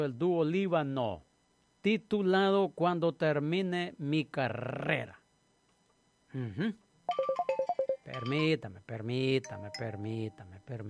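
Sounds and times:
speech: 0.0 - 5.2, 6.3 - 7.4, 8.1 - 10.8
telephone ringing during a Spanish-language radio show: 7.1 - 8.6.

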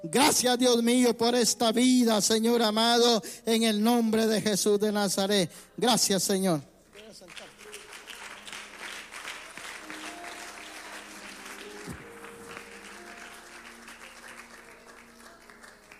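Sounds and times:
speech: 0.0 - 7.5
audience clapping hands: 6.9 - 15.9.

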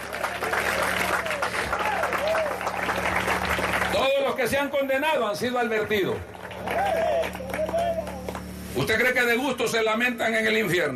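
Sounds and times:
audience applause: 0.0 - 4.7, 5.7 - 8.5
speech: 4.4 - 7.4, 8.7 - 10.9.

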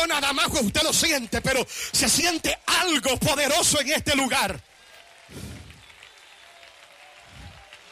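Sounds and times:
speech: 0.0 - 4.7
crowd audience applauding: 4.1 - 7.9.

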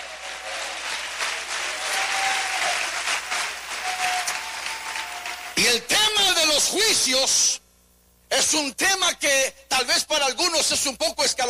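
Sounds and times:
audience applause: 0.0 - 5.6
speech: 6.8 - 7.6, 8.4 - 11.4.

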